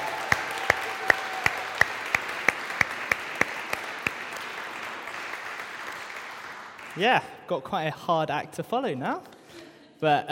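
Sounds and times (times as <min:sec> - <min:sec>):
audience applause: 0:00.0 - 0:07.0
speech: 0:07.0 - 0:10.2.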